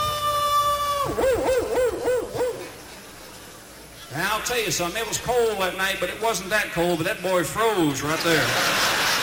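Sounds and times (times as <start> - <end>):
voice imitating a baying Alaskan wolf howl and yelps: 0.1 - 2.8
speech: 4.5 - 9.0
laughter: 8.1 - 9.2.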